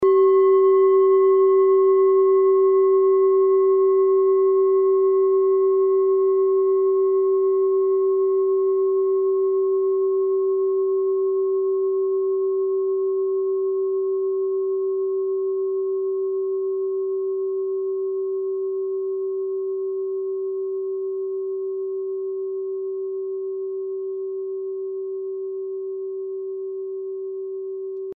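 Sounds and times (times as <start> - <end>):
small singing bowl: 0.0 - 28.1.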